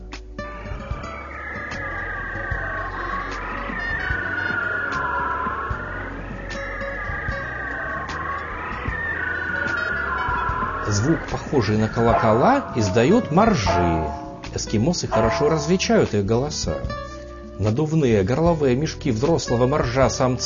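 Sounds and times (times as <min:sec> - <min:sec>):
bearded seal underwater song: 0:00.4 - 0:14.5
steady low rumble: 0:00.4 - 0:17.1
speech: 0:11.0 - 0:17.0, 0:17.6 - 0:20.4.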